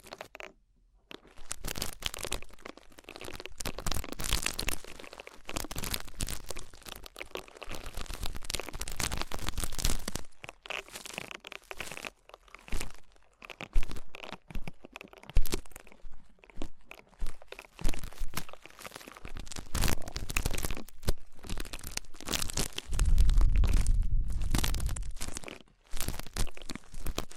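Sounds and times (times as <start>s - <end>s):
ear cleaning crackly rubbing: 1.1s - 27.3s
low rumbling scrape: 22.9s - 25.2s.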